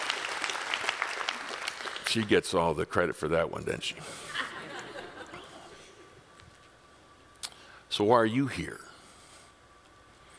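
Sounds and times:
audience applause: 0.0 - 2.4
speech: 2.1 - 4.5, 8.0 - 8.9
laughter: 4.0 - 6.2.

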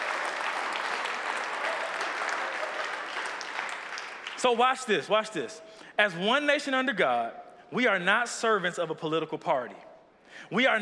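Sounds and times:
audience applause: 0.0 - 4.7
speech: 4.4 - 10.7.

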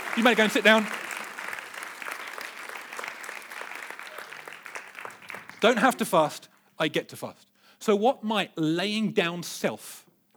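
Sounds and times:
audience applause: 0.0 - 6.3
speech: 0.2 - 1.0, 5.6 - 10.0.

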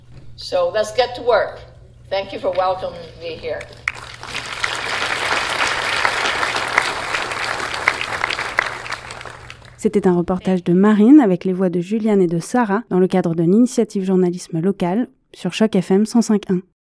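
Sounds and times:
speech: 0.4 - 4.4, 9.8 - 16.7
applause from council and audience: 3.6 - 9.8.

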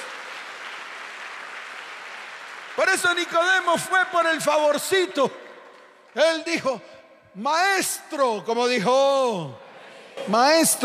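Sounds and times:
audience applause: 0.0 - 4.0
speech: 2.8 - 5.4, 6.1 - 9.6, 10.2 - 10.8.

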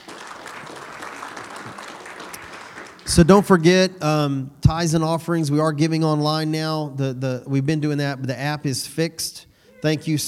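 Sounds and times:
audience hand clapping: 0.0 - 3.8
speech: 3.1 - 10.2.

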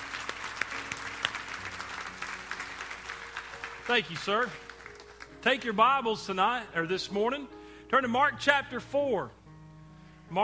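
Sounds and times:
audience hand clapping applause: 0.0 - 5.8
speech: 3.9 - 4.7, 5.4 - 9.4.

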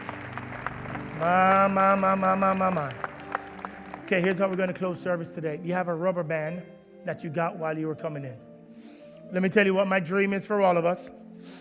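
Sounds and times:
audience applause: 0.0 - 5.0
speech: 1.2 - 3.0, 4.1 - 8.4, 9.3 - 11.6.

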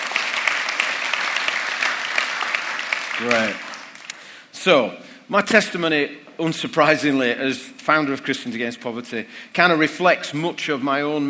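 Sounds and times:
audience clapping: 0.0 - 4.2
speech: 3.2 - 3.7, 4.6 - 11.2.

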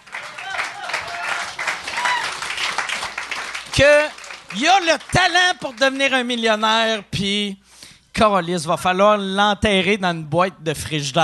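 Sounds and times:
crowd applauding: 0.0 - 6.2
brief cheers or voices: 0.1 - 2.6
speech: 3.8 - 7.6, 8.2 - 11.2.

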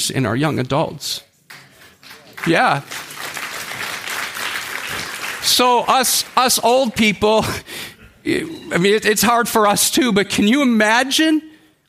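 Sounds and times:
speech: 0.0 - 1.3, 2.4 - 3.0, 5.5 - 11.5
audience clapping: 1.5 - 7.5.

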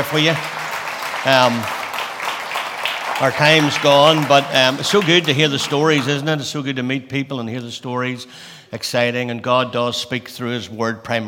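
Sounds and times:
speech: 0.0 - 0.5, 1.2 - 1.8, 3.2 - 11.2
voice cheering: 0.0 - 6.4
audience clapping: 0.0 - 6.5.

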